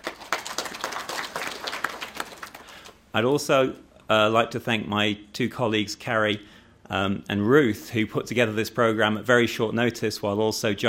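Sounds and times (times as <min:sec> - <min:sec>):
audience applauding: 0:00.0 - 0:03.0
speech: 0:03.1 - 0:10.8.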